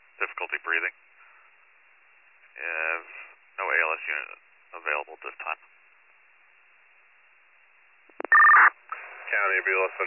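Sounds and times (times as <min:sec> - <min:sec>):
speech: 0:00.4 - 0:01.1, 0:02.6 - 0:03.2, 0:03.8 - 0:05.7, 0:09.3 - 0:10.0
dispatch paging tones: 0:08.2 - 0:08.8.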